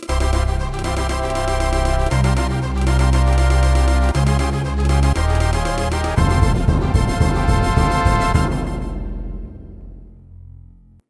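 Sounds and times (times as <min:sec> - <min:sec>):
fanfare: 0:00.0 - 0:10.1.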